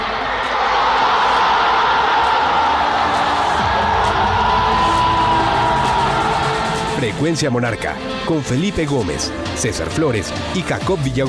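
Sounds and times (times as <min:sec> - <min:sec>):
stadium crowd shouting and cheering: 0:00.0 - 0:09.0
speech: 0:07.0 - 0:11.2.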